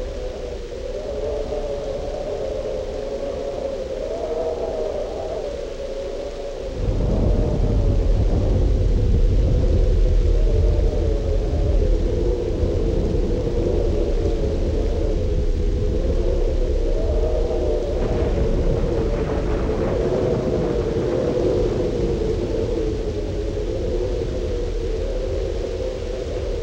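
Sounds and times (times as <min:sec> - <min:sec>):
heavy wind: 0:00.0 - 0:26.6
thunderstorm: 0:00.0 - 0:26.6.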